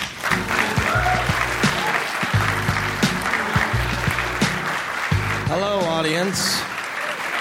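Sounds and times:
audience applause: 0.0 - 7.3
speech: 5.6 - 6.7.

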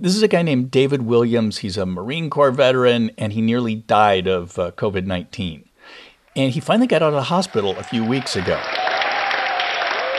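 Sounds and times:
speech: 0.0 - 9.0
hospital staff applauding a recovered patient leaving: 6.3 - 10.1
hospital staff cheering: 6.3 - 10.1.

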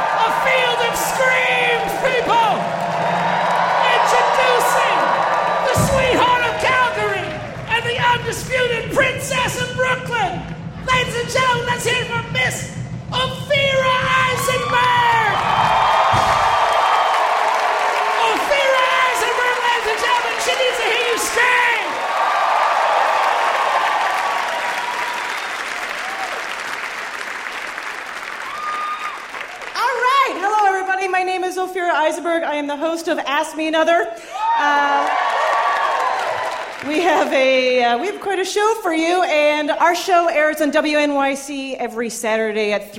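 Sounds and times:
live audience applauding: 0.0 - 12.2, 13.2 - 30.8, 34.4 - 37.8
low hum: 0.0 - 21.0
speech: 32.0 - 35.1, 36.8 - 42.9.

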